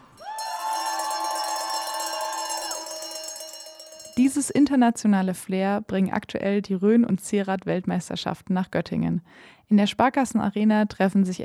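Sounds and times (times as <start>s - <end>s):
crowd cheering: 0.0s - 4.3s
cowbells ringing: 0.2s - 4.8s
speech: 4.2s - 11.4s.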